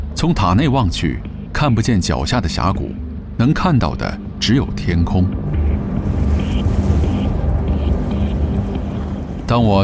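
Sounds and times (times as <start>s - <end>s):
speech: 0.2s - 5.5s, 9.5s - 9.8s
strong wind roaring atop a tall tower: 4.7s - 9.8s.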